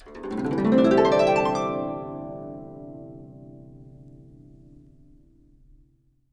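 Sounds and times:
guqin plucked: 0.0 - 5.0.

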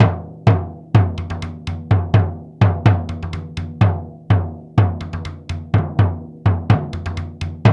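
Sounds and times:
daiko drum ensemble: 0.0 - 7.7.

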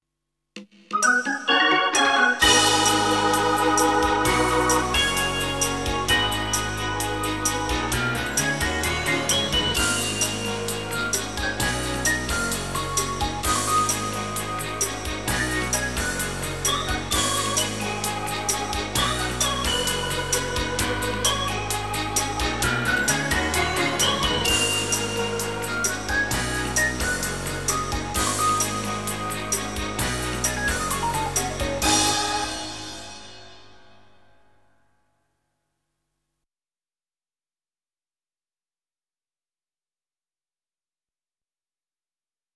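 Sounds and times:
Hammond B3 organ: 1.0 - 34.0.

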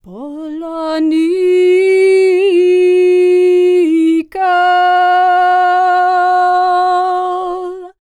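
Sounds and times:
Serbian singing voices: 0.0 - 8.0.

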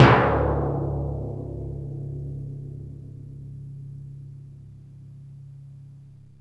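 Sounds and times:
timpani: 0.0 - 3.2.

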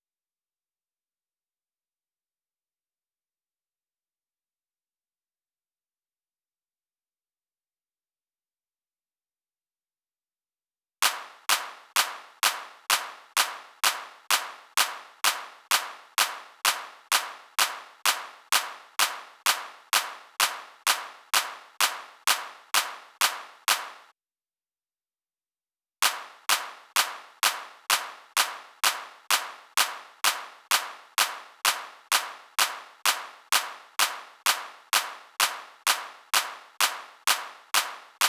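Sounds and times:
clap: 11.0 - 24.1, 26.0 - 38.2.

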